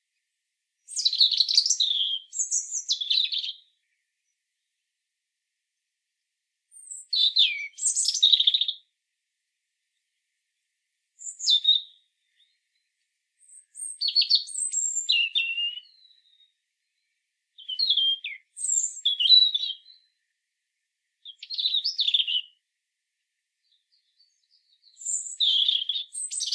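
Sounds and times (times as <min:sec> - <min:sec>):
European robin singing: 0:00.9 - 0:03.7, 0:06.7 - 0:08.8, 0:11.2 - 0:20.1, 0:21.2 - 0:22.6, 0:23.6 - 0:26.5.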